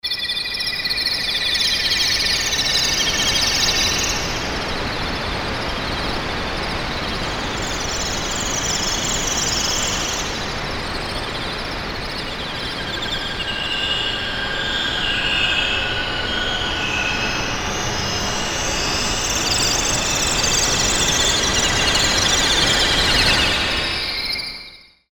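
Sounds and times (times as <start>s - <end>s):
tropical forest ambience: 0.0s - 24.9s.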